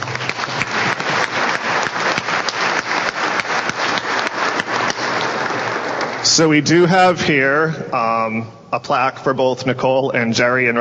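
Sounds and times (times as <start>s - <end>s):
audience applause: 0.0s - 6.5s
speech: 6.4s - 10.7s.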